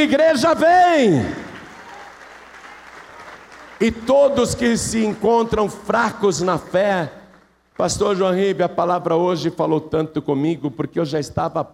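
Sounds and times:
speech: 0.0s - 1.4s, 3.8s - 7.2s, 7.8s - 11.7s
audience applause: 1.2s - 5.6s.

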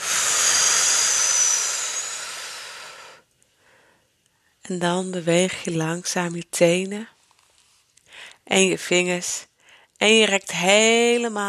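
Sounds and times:
breathy exhale blown out during a guided relaxation: 0.0s - 4.1s
speech: 4.7s - 7.2s, 8.5s - 11.4s.

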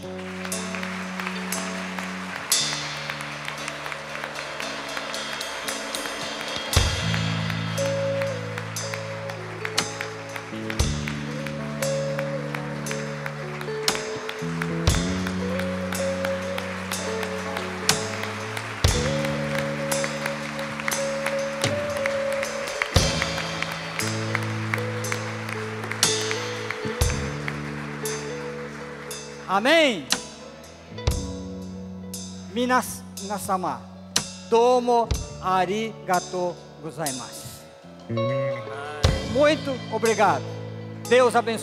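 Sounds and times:
audience applauding: 0.0s - 30.6s
speech: 29.6s - 30.1s, 32.6s - 33.9s, 34.5s - 37.4s, 38.1s - 38.4s, 39.4s - 40.5s, 41.1s - 41.6s.

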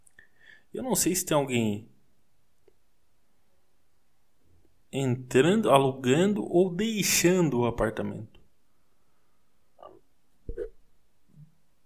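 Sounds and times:
speech: 0.7s - 1.9s, 4.9s - 8.4s
brief low throaty burp: 9.8s - 11.5s.

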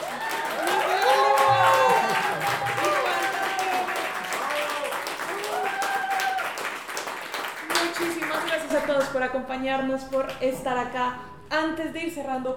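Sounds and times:
cheering voices and shouts: 0.0s - 6.6s
audience applause: 0.0s - 9.1s
speech: 9.2s - 12.5s.

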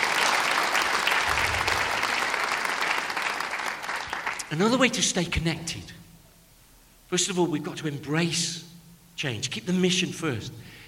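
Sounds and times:
church congregation clapping in praise of the Lord: 0.0s - 4.8s
speech: 4.5s - 6.0s, 7.1s - 10.8s.

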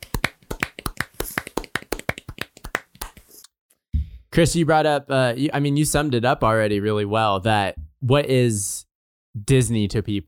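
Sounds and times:
hosts clapping hands: 0.0s - 3.2s
speech: 4.4s - 8.8s, 9.4s - 10.2s.

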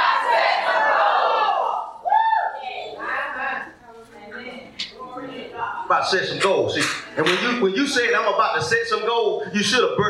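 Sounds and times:
audience shouting in unison: 0.0s - 2.6s
murmur of voices: 0.0s - 10.0s
speech: 6.0s - 10.0s.

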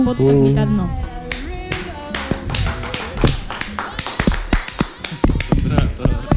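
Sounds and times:
speech: 0.0s - 1.0s
hand clapping: 1.3s - 6.3s.

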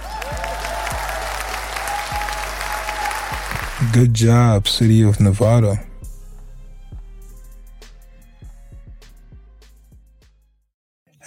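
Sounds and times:
audience applause: 0.0s - 4.4s
speech: 3.8s - 5.9s.

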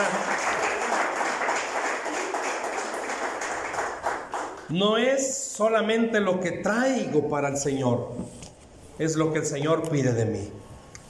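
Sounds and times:
audience applause: 0.0s - 4.7s
speech: 4.7s - 8.4s, 9.0s - 10.7s.

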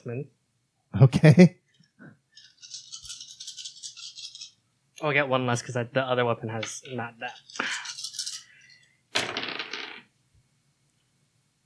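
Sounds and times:
speech: 0.0s - 1.6s, 5.0s - 7.8s
dice rattling: 2.4s - 4.6s, 7.3s - 8.5s, 9.2s - 10.1s.

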